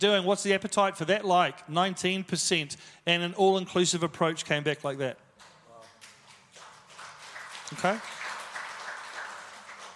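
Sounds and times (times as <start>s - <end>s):
speech: 0.0s - 5.2s, 7.7s - 8.2s
audience clapping: 5.4s - 9.9s.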